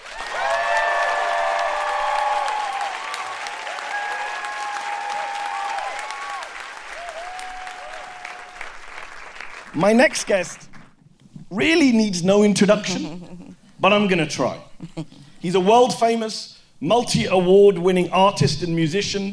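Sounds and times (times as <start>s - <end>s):
large audience clapping: 0.0s - 11.0s
whoops: 0.1s - 8.7s
speech: 9.8s - 10.7s, 11.5s - 19.3s
laughter: 12.7s - 13.6s.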